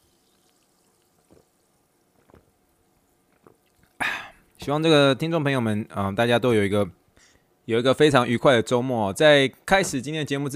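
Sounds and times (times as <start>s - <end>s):
sparkling water fizzing: 0.0s - 2.2s
soft liquid pops: 0.3s - 4.0s
speech: 4.7s - 7.0s, 7.7s - 10.5s.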